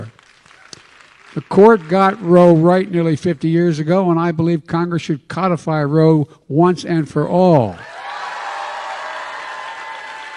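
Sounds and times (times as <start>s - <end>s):
audience applause: 0.0s - 2.8s, 7.8s - 10.3s
speech: 1.3s - 7.9s.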